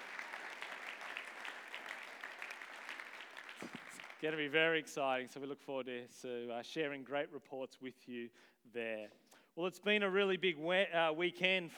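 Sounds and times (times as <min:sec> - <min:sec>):
audience applause: 0:00.0 - 0:04.3
speech: 0:04.2 - 0:11.7.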